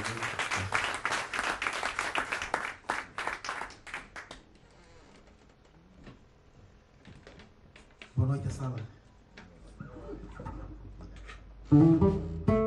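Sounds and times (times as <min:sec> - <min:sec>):
audience applause: 0:00.0 - 0:04.5
speech: 0:08.2 - 0:09.0, 0:11.7 - 0:12.3.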